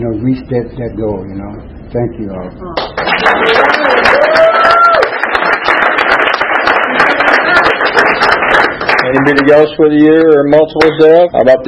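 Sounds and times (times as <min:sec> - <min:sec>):
speech: 0:00.0 - 0:04.5, 0:09.1 - 0:11.6
meeting audience applause: 0:02.8 - 0:09.7
person whooping: 0:03.4 - 0:05.2.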